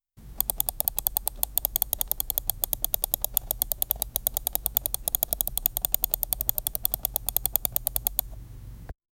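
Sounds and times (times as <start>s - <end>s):
long smooth mouse wheel scrolling: 0.2s - 8.4s.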